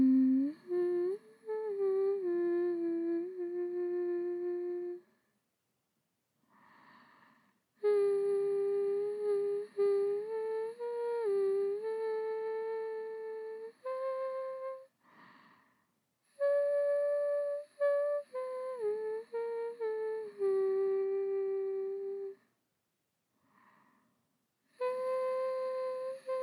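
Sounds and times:
person singing a lullaby: 0.0s - 5.2s, 7.8s - 14.9s, 16.3s - 22.5s, 24.8s - 26.4s.

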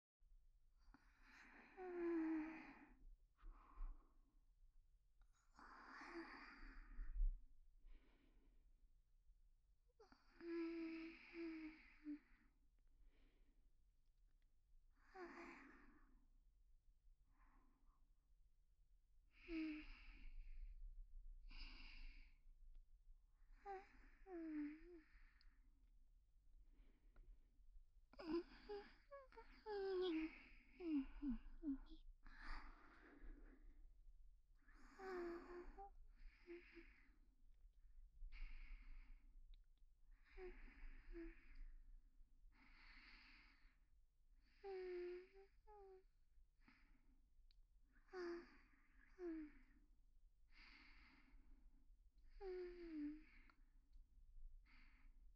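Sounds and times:
woman breathing calmly in sleep beside her boyfriend: 0.9s - 4.4s, 5.2s - 7.3s, 10.0s - 13.4s, 14.9s - 16.3s, 19.3s - 20.8s, 21.5s - 22.4s, 23.4s - 25.6s, 28.1s - 33.8s, 34.6s - 37.2s, 38.2s - 39.4s, 40.1s - 41.8s, 42.5s - 46.0s, 47.9s - 51.6s, 52.2s - 53.6s, 54.6s - 55.2s.

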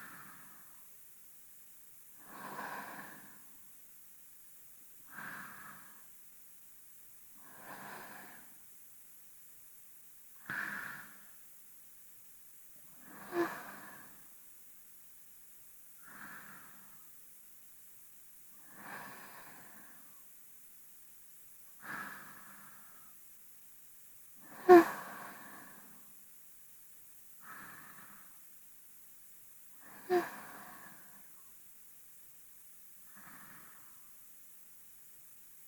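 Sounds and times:
person breathing in sleep, binaural: 0.0s - 0.8s, 2.2s - 3.6s, 5.0s - 6.1s, 7.4s - 8.6s, 10.4s - 11.4s, 12.9s - 14.3s, 16.0s - 17.2s, 18.6s - 20.3s, 21.8s - 23.2s, 24.4s - 26.2s, 27.4s - 28.5s, 29.7s - 31.5s, 33.0s - 34.3s.

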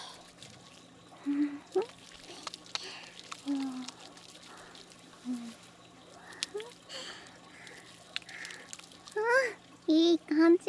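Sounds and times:
shampoo being lathered in hair: 1.5s - 9.7s.

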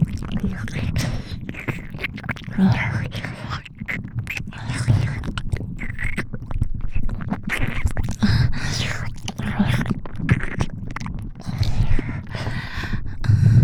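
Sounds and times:
ear licking sounds: 0.0s - 13.6s
strong tentacle squelching loop: 0.0s - 13.6s.

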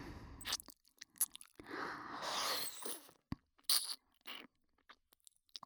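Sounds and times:
ASMR ear licking without wet sounds: 0.4s - 1.6s, 2.2s - 4.5s.

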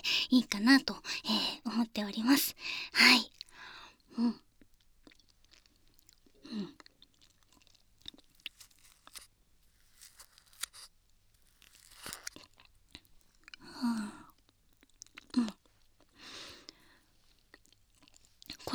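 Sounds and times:
speech: 0.0s - 3.4s, 4.2s - 4.4s, 6.5s - 6.8s
chewing something cold: 4.4s - 18.7s
crunchy bites: 6.5s - 12.8s.

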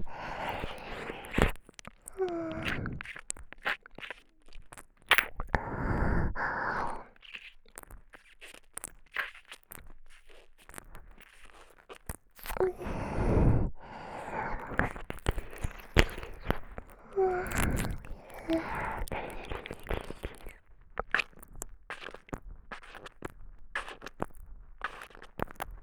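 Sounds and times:
sucking sounds: 0.0s - 7.6s, 11.5s - 21.4s
soft tongue licking: 0.0s - 13.1s, 14.2s - 25.8s.

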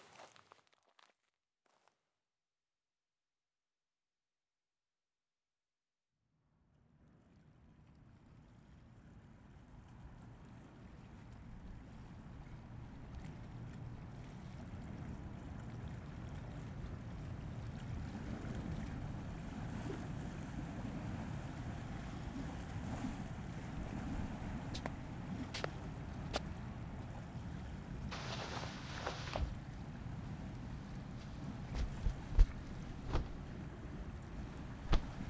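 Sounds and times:
ships passing through the Kanmon Strait: 10.2s - 35.2s
ocean waves at the Kanmon Strait: 17.2s - 35.2s.

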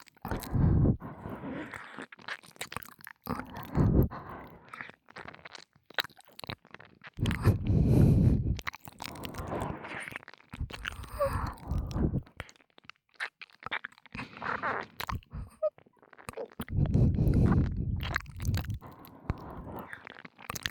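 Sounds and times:
ASMR ear licking sounds: 0.0s - 20.6s
ASMR breathy sighs: 0.2s - 2.0s, 3.3s - 4.9s, 7.2s - 12.4s, 15.2s - 15.7s, 16.7s - 20.1s.

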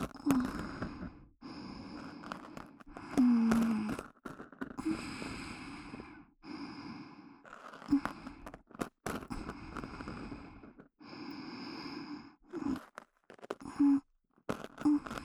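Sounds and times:
ear scratching and ear cleaning in the right ear for sleep: 0.0s - 5.8s, 7.4s - 10.9s, 12.5s - 15.2s.

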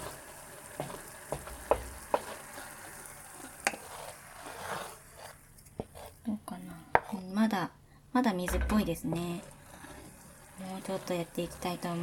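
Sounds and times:
fine bubbles sizzling in a pan while cooking: 0.0s - 6.2s, 8.5s - 12.0s
speech: 7.6s - 9.6s, 10.8s - 12.0s
utensil knocks: 8.5s - 9.3s.

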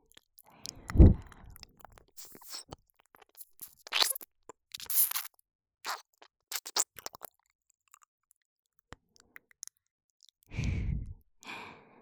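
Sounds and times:
ASMR ear licking in right ear: 0.1s - 5.3s, 5.9s - 7.3s.

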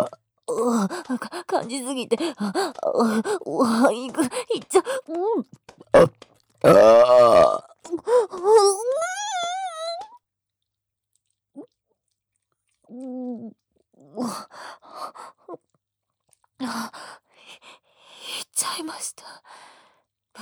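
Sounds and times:
burping: 0.0s - 0.6s, 5.7s - 8.0s
speech: 0.0s - 9.6s, 12.9s - 15.6s, 16.6s - 19.7s.

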